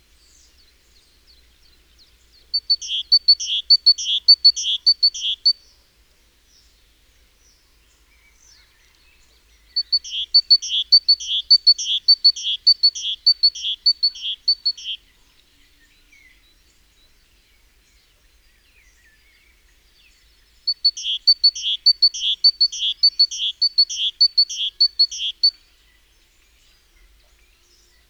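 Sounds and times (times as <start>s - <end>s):
great tit calls: 1.5s - 5.6s, 9.5s - 15.1s, 20.7s - 25.6s.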